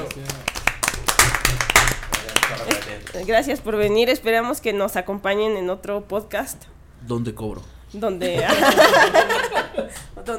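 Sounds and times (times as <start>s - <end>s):
small group applauding with hand claps: 0.0s - 3.7s
speech: 3.2s - 10.3s
laughter: 8.2s - 10.1s.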